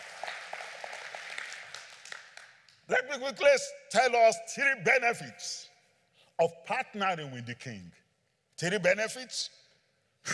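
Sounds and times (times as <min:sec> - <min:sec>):
audience clapping: 0:00.0 - 0:02.9
speech: 0:03.1 - 0:05.7, 0:06.4 - 0:08.0, 0:08.6 - 0:09.6.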